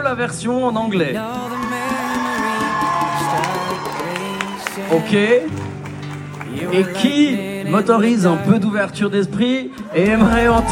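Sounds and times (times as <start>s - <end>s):
speech: 0.0s - 1.6s, 4.8s - 5.7s, 6.6s - 10.6s
live crowd cheering with whoops and shouting: 1.2s - 7.4s, 9.8s - 10.6s
scattered applause: 1.6s - 7.1s, 9.9s - 10.6s.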